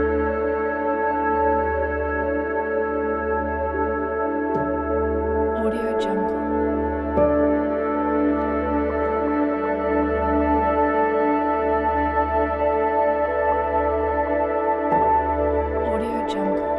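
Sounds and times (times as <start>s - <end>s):
meditative ambient soundscape: 0.0s - 16.7s.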